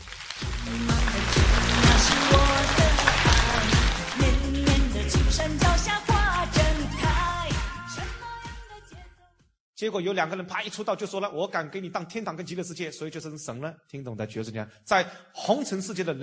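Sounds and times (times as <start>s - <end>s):
crowd applauding: 0.0s - 5.2s
loud rhythmic music: 0.4s - 9.1s
speech: 9.8s - 16.2s.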